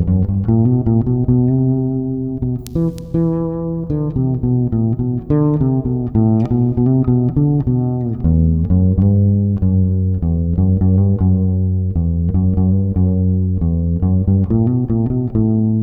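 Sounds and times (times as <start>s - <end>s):
fretless instrument: 0.1s - 15.8s.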